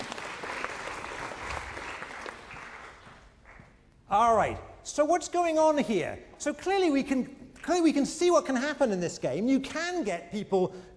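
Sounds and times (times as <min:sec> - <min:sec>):
audience applause: 0:00.0 - 0:03.6
speech: 0:04.1 - 0:10.9.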